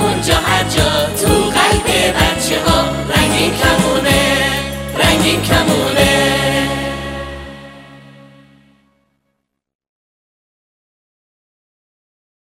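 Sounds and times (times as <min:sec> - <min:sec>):
happy children's song: 0:00.0 - 0:08.3.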